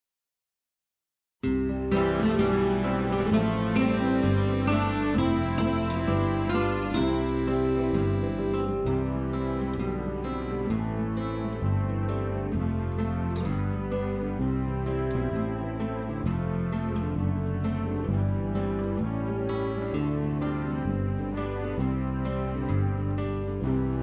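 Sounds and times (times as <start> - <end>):
instrumental music without voice: 1.4 - 24.0.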